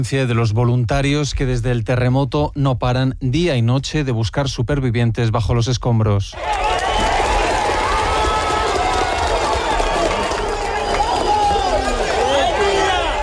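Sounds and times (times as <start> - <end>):
speech: 0.0 - 7.2
applause and cheering at a rescue: 6.4 - 13.2.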